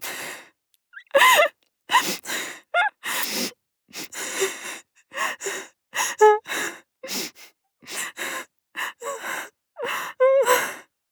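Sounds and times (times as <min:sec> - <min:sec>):
woman whining: 0:01.0 - 0:01.5, 0:02.7 - 0:03.0, 0:06.1 - 0:06.5, 0:09.8 - 0:10.6.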